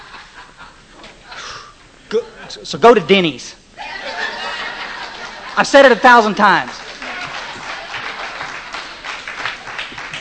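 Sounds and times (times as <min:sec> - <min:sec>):
laughter: 0:00.0 - 0:02.5, 0:03.8 - 0:09.1
speech: 0:02.1 - 0:03.6, 0:05.6 - 0:06.8
audience applause: 0:04.0 - 0:10.1.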